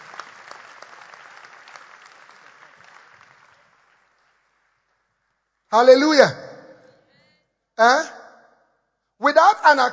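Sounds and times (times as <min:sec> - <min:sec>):
church audience clapping hands: 0:00.0 - 0:05.0
speech: 0:05.7 - 0:06.4, 0:07.8 - 0:08.1, 0:09.6 - 0:09.9.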